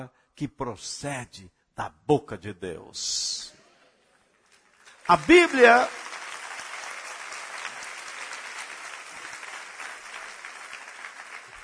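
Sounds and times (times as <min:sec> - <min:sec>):
speech: 0:00.0 - 0:03.6, 0:05.1 - 0:06.2
church congregation applause: 0:04.2 - 0:11.6.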